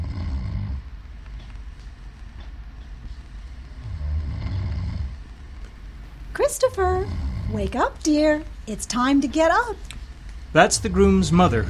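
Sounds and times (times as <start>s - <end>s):
man snoring: 0.0s - 0.8s, 3.8s - 5.2s
speech: 6.4s - 9.9s, 10.5s - 11.6s.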